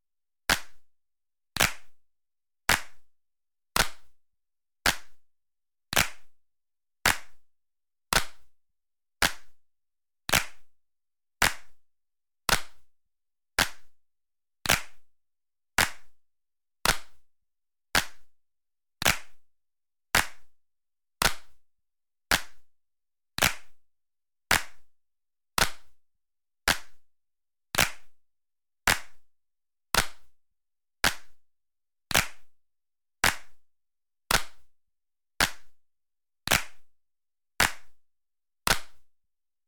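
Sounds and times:
hands clapping: 0.5 - 0.8, 1.6 - 2.0, 2.7 - 3.1, 3.8 - 4.2, 4.8 - 5.2, 5.9 - 6.4, 7.0 - 7.4, 8.1 - 8.5, 9.2 - 9.6, 10.3 - 10.7, 11.4 - 11.8, 12.5 - 12.9, 13.6 - 13.9, 14.6 - 15.1, 15.8 - 16.2, 16.8 - 17.2, 18.0 - 18.3, 19.0 - 19.4, 20.2 - 20.5, 21.2 - 21.6, 22.3 - 22.7, 23.4 - 23.8, 24.5 - 24.9, 25.6 - 26.0, 26.7 - 27.0, 27.8 - 28.2, 28.9 - 29.2, 29.9 - 30.3, 31.0 - 31.4, 32.1 - 32.5, 33.2 - 33.6, 34.3 - 34.7, 35.4 - 35.8, 36.5 - 36.9, 37.6 - 38.0, 38.7 - 39.1.

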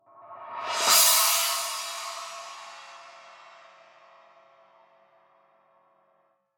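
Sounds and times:
cymbal roll: 0.6 - 4.8.

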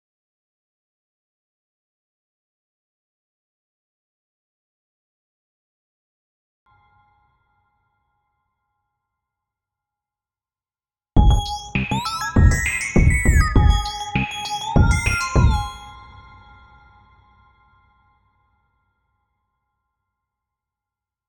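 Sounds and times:
jingle: 11.2 - 17.8.

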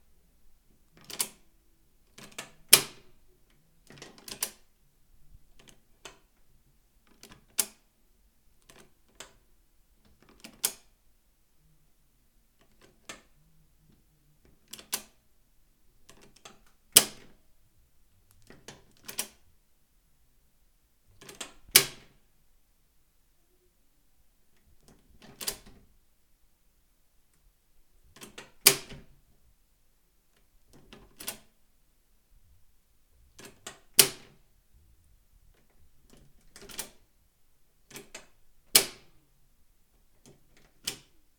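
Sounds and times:
deadbolt lock: 1.0 - 1.4, 2.2 - 3.1, 3.9 - 4.7, 10.3 - 10.9, 14.7 - 15.2, 16.1 - 17.3, 18.4 - 19.4, 21.2 - 22.2, 25.2 - 25.8, 28.2 - 29.1, 30.7 - 31.5, 33.4 - 34.4, 36.1 - 37.0, 37.9 - 39.1, 40.2 - 41.1.

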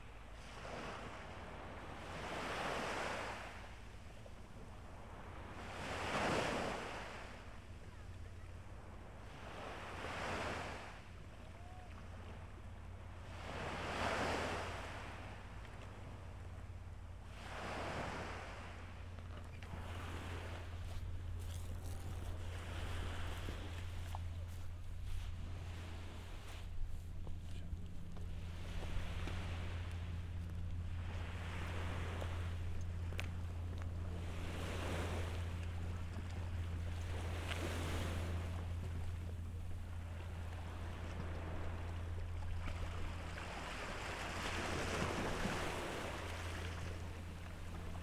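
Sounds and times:
winter beach ambience: 0.0 - 48.0.

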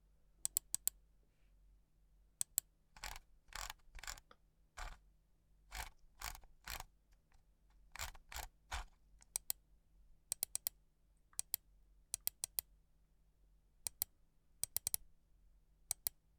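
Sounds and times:
mouse wheel scrolling: 0.5 - 0.9, 2.4 - 5.0, 5.7 - 6.9, 7.9 - 9.6, 13.9 - 15.0
computer mouse clicking: 0.5 - 1.0, 8.0 - 9.6, 10.3 - 10.7, 11.4 - 11.6, 12.2 - 12.6, 13.9 - 15.0, 15.9 - 16.2.

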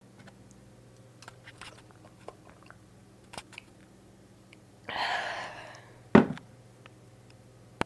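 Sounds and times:
person drinking: 1.8 - 2.8, 4.9 - 6.0.

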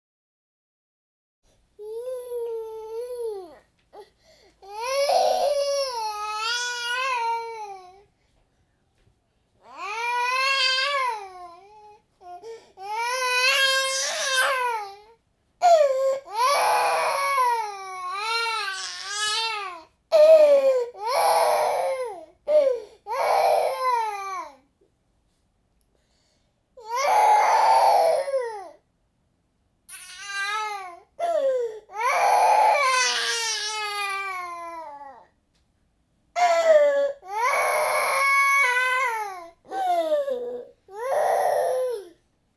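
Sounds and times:
baby crying: 1.8 - 3.6, 4.6 - 8.0, 9.6 - 24.6, 26.8 - 28.8, 29.9 - 35.3, 36.4 - 42.2.

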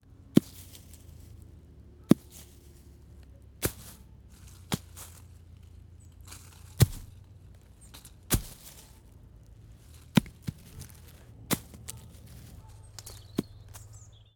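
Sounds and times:
apple falling: 3.6 - 5.3, 6.2 - 7.3, 7.9 - 9.0, 9.9 - 13.8.

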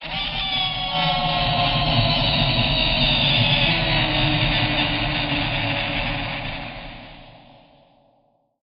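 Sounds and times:
terrifying scream: 0.0 - 7.9.

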